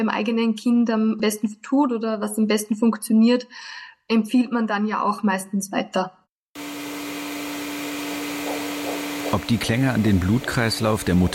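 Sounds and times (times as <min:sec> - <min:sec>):
speech: 0:00.0 - 0:06.2, 0:09.3 - 0:11.3
vacuum cleaner running: 0:06.6 - 0:11.3.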